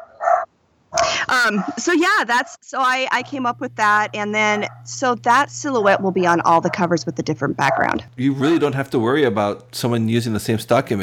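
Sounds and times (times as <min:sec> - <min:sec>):
dogs barking: 0:00.0 - 0:02.0, 0:03.4 - 0:09.4
laughter: 0:01.0 - 0:02.2, 0:03.2 - 0:11.0
speech: 0:01.4 - 0:11.0.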